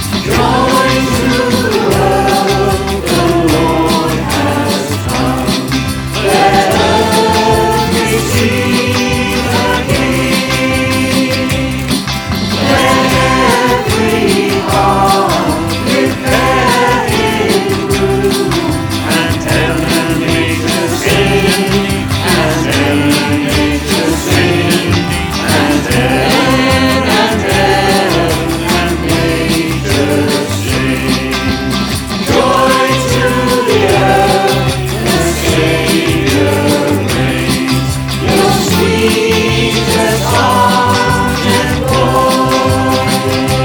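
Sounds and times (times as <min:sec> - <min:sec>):
choir singing a carol: 0:00.2 - 0:43.6.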